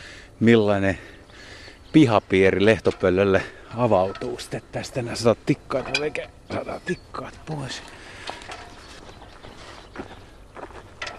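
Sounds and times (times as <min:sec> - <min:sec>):
speech: 0:00.4 - 0:01.2, 0:01.9 - 0:08.0
footsteps crunching in a yard: 0:07.3 - 0:11.1.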